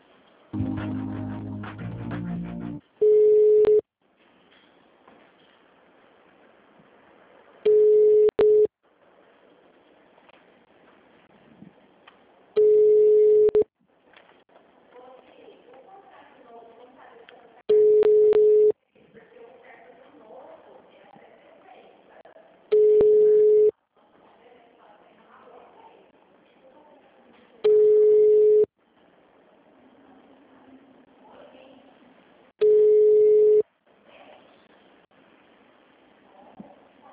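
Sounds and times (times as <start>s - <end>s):
telephone line tones during a call transfer: 3.0s - 3.8s, 7.7s - 8.7s, 12.6s - 13.7s, 17.7s - 18.8s, 22.7s - 23.7s, 27.7s - 28.7s, 32.6s - 33.6s.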